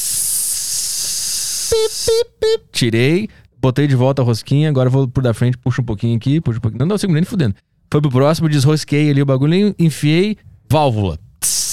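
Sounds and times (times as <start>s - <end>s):
air hose inflating a car tyre through the valve: 0.0s - 2.3s, 11.4s - 11.7s
speech: 1.7s - 11.7s.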